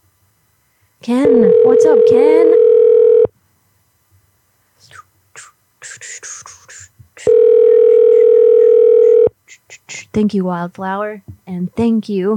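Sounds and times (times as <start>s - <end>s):
speech: 1.0s - 2.7s, 10.2s - 12.3s
telephone tone dialing a call: 1.2s - 3.3s, 7.3s - 9.3s.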